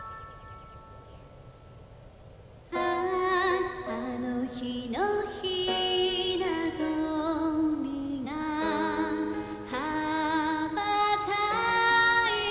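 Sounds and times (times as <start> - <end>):
vocal song: 2.7 - 12.4.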